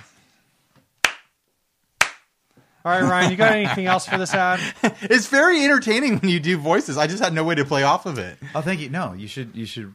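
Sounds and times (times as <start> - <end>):
slow clap: 1.0 - 1.4, 2.0 - 2.3
speech: 2.8 - 9.9
laughter: 2.9 - 7.1, 8.3 - 8.9.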